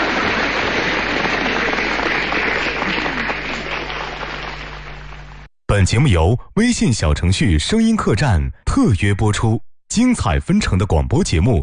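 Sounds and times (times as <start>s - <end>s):
sustained audience applause: 0.0s - 5.5s
speech: 5.7s - 11.6s.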